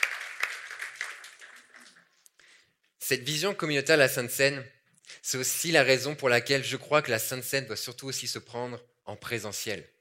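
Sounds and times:
church audience clapping for volunteers: 0:00.0 - 0:02.2
speech: 0:03.1 - 0:09.9.

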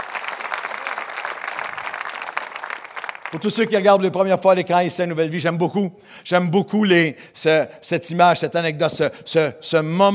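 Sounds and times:
audience applause: 0:00.0 - 0:03.8
speech: 0:03.3 - 0:10.1.

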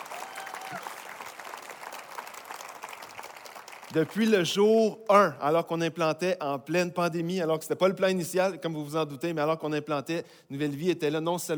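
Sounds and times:
audience applause: 0:00.0 - 0:04.2
speech: 0:03.9 - 0:11.5.

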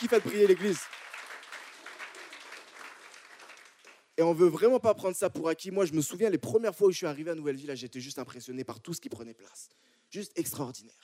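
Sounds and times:
speech: 0:00.0 - 0:01.1, 0:04.2 - 0:11.0
audience applause in a church: 0:00.0 - 0:04.1.

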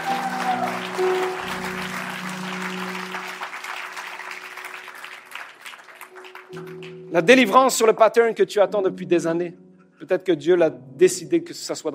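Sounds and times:
audience applause: 0:00.0 - 0:07.0
speech: 0:06.6 - 0:11.9.

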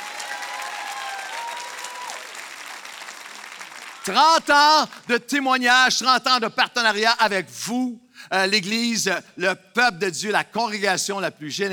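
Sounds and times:
faint tonal cheers: 0:00.0 - 0:02.4
audience applause: 0:00.0 - 0:04.1
speech: 0:04.0 - 0:11.7.

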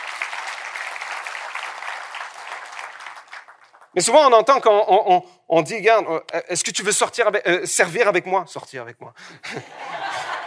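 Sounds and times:
audience applause: 0:00.0 - 0:04.0
speech: 0:04.0 - 0:09.9
laughter: 0:09.4 - 0:10.4.

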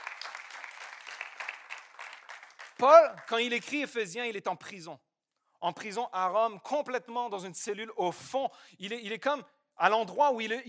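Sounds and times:
congregational applause during a church service: 0:00.0 - 0:04.0
speech: 0:02.8 - 0:10.6.

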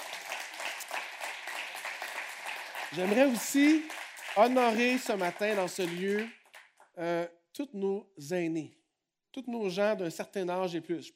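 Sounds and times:
church congregation clapping: 0:00.0 - 0:07.0
speech: 0:02.9 - 0:06.4, 0:07.0 - 0:11.1.

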